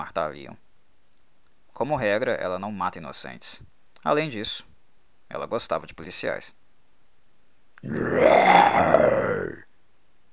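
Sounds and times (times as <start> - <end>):
speech: 0.0 - 0.6, 1.8 - 4.7, 5.3 - 6.6, 7.8 - 9.6
violent inhuman scream: 7.8 - 9.6.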